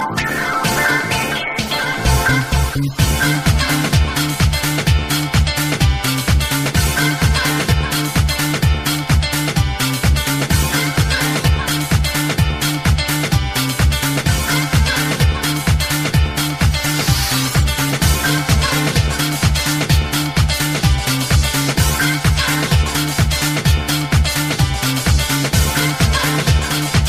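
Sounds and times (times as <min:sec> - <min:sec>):
house music: 0:00.0 - 0:27.0.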